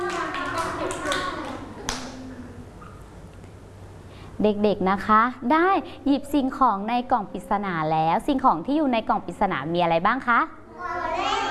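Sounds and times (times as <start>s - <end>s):
children clapping hands: 0.0s - 2.2s
speech: 4.4s - 11.4s.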